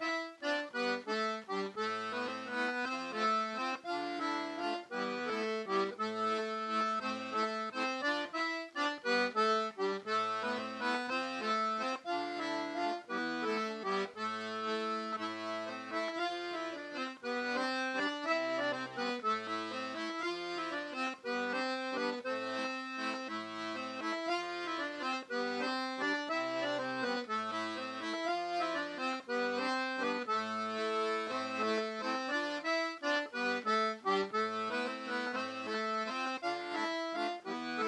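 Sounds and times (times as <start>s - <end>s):
bourree theme music: 0.0s - 37.8s.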